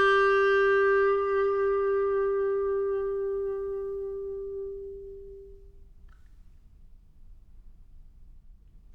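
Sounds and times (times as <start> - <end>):
chalumeau improvisation: 0.0 - 5.8.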